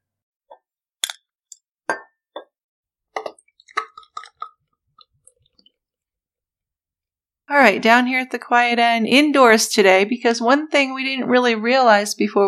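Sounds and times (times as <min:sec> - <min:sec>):
glass bottle of IPA beer clinks: 0:01.9 - 0:02.2
speech: 0:07.5 - 0:12.4.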